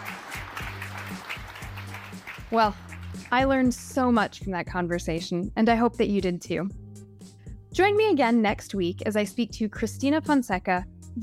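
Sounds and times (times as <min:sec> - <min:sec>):
audience applause: 0:00.0 - 0:03.3
speech: 0:02.5 - 0:06.8, 0:07.8 - 0:11.2.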